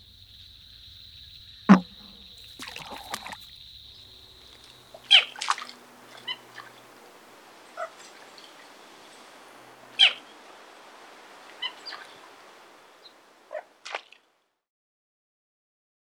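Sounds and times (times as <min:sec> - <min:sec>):
American bullfrog call: 0:00.0 - 0:10.7, 0:11.3 - 0:12.4, 0:13.0 - 0:13.8.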